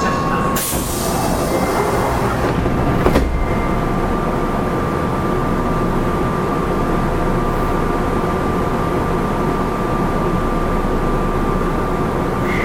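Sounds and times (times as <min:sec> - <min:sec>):
Kintetsu 7000 series electric train rumbling: 0:00.0 - 0:12.6.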